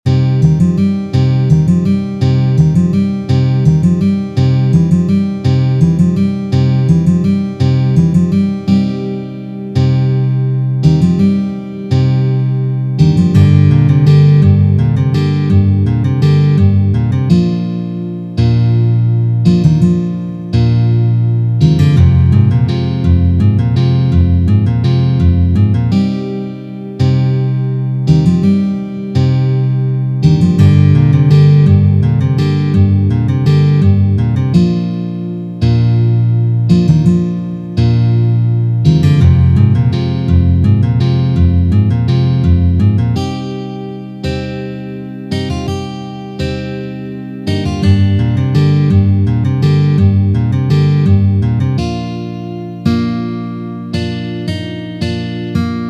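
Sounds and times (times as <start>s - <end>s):
fast tempo guitar: 0.1s - 55.8s.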